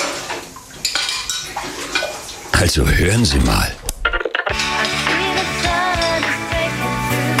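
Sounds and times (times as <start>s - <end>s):
running water: 0.0s - 7.2s
cutlery and crockery clinking while dishes are washed: 0.8s - 2.2s, 4.5s - 6.7s
speech: 2.6s - 3.8s.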